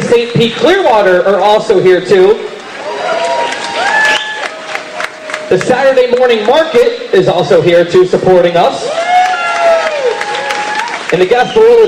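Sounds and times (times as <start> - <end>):
speech: 0.1 - 2.6, 5.5 - 9.0, 11.1 - 11.8
crowd applause at a running event in St. Pete: 2.6 - 6.9, 8.9 - 11.8.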